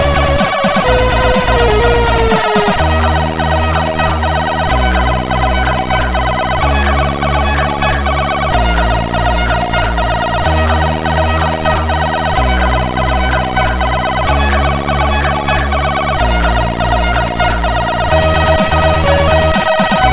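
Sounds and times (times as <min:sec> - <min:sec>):
crack intro music on CSG8580R5: 0:00.0 - 0:20.1.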